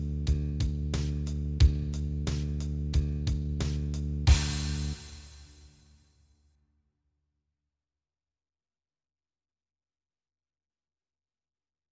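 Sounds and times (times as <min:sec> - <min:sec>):
bass open D: 0:00.0 - 0:05.6.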